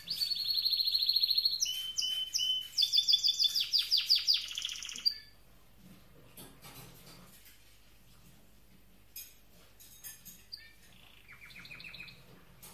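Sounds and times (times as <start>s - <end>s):
canary singing: 0.0s - 5.4s, 10.5s - 12.4s.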